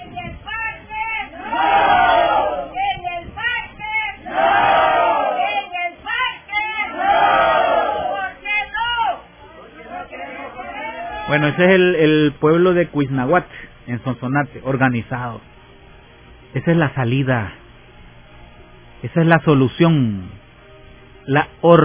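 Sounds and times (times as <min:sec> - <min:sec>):
crowd shouting at the mayor: 0:01.2 - 0:02.9, 0:04.2 - 0:11.8
speech: 0:11.4 - 0:15.5, 0:16.5 - 0:17.6, 0:19.0 - 0:20.4, 0:21.2 - 0:21.8.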